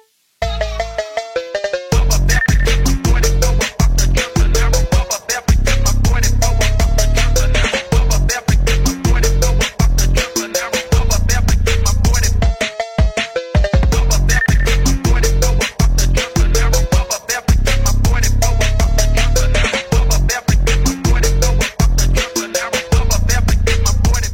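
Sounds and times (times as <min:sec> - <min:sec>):
phonk remix: 0:00.5 - 0:24.3.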